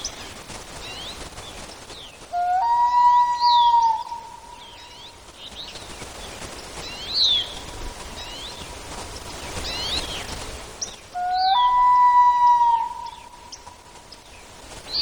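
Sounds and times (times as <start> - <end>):
common loon with punctuated calls: 2.3 - 5.0, 11.2 - 13.8.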